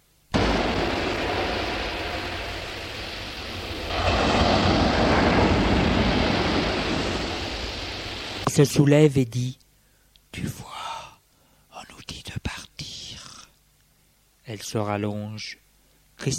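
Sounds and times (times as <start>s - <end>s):
sea: 0.4s - 8.6s
speech: 8.6s - 9.6s, 10.3s - 10.7s, 14.5s - 15.6s, 16.2s - 16.3s.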